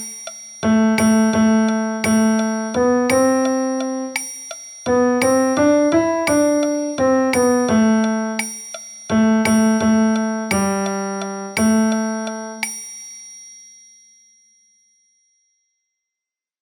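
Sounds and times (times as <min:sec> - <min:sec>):
piano music: 0:00.6 - 0:04.3, 0:04.9 - 0:12.6.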